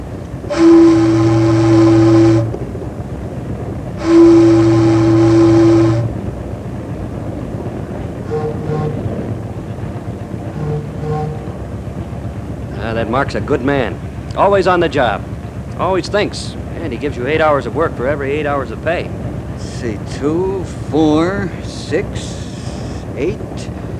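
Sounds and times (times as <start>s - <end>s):
constant low rumbling background: 0.0s - 23.9s
riverboat whistle blasts: 0.4s - 2.7s, 3.9s - 6.3s, 8.2s - 9.3s, 10.5s - 11.7s, 19.5s - 23.8s
speech: 13.2s - 19.2s, 19.8s - 22.4s, 23.2s - 23.6s.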